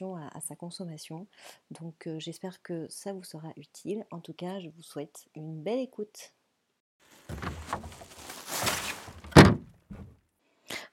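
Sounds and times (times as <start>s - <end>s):
speech: 0.0s - 6.4s
trash bin sound effect: 7.2s - 10.1s.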